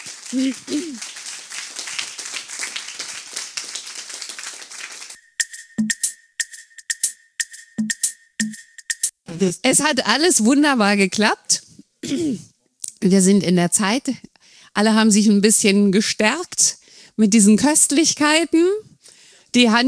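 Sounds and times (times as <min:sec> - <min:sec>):
applause: 0:00.0 - 0:05.2
speech: 0:00.3 - 0:01.2, 0:09.4 - 0:18.8, 0:19.6 - 0:19.8.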